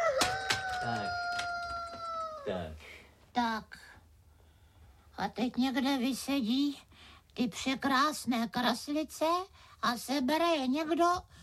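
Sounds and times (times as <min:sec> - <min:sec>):
rooster crowing: 0:00.0 - 0:02.5
speech: 0:03.4 - 0:03.9, 0:05.2 - 0:11.4.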